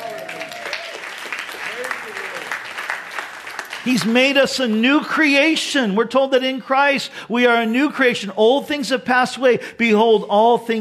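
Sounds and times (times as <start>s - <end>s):
audience clapping: 0.0s - 5.1s
speech: 3.8s - 10.7s.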